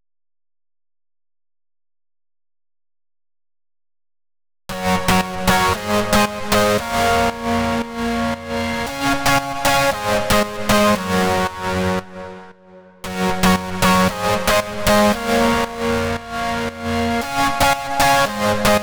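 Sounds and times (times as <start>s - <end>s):
lead synth in F minor: 4.7s - 18.8s.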